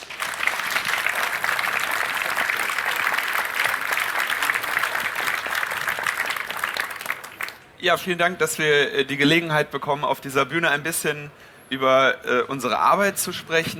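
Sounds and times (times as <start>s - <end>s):
audience applause: 0.0s - 7.6s
speech: 7.8s - 13.7s.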